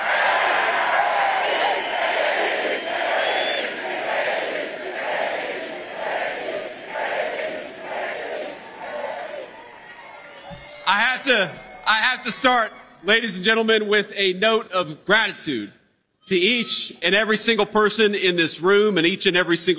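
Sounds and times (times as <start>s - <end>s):
crowd chanting a name: 0.0s - 9.5s
speech: 11.2s - 19.7s.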